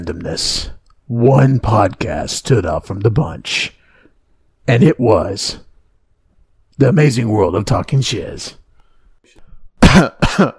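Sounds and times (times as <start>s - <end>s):
speech: 0.0s - 3.8s, 4.7s - 5.7s, 6.8s - 8.6s, 9.2s - 10.5s
throat clearing: 9.8s - 10.5s.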